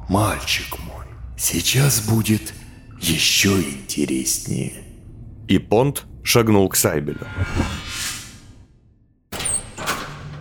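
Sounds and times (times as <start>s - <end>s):
speech: 0.1s - 4.9s, 5.5s - 8.2s
door being shut and locked: 9.3s - 10.3s.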